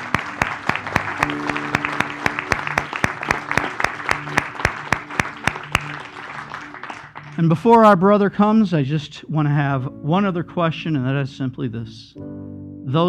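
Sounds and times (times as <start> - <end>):
audience clapping: 0.0 - 8.0
speech: 7.4 - 13.0.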